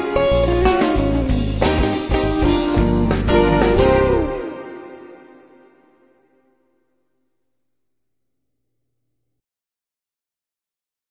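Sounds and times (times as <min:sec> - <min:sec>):
jazz music: 0:00.0 - 0:06.4.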